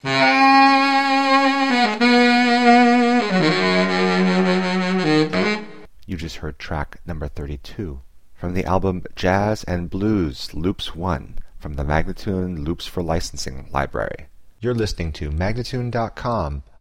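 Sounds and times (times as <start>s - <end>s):
jazz and blues loops: 0.0s - 5.9s
person speaking: 5.2s - 16.7s.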